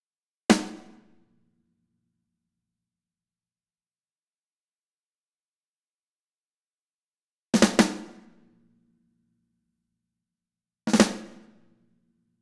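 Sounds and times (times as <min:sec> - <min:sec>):
snare drum: 0:00.5 - 0:01.1, 0:07.6 - 0:08.3, 0:10.9 - 0:11.5.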